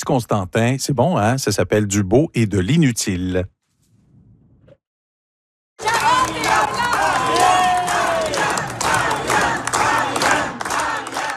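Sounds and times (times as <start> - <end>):
speech: 0.0 - 3.6
crowd ambience at Parti québécois campaign rally in Rivière-du-Loup: 5.8 - 11.3.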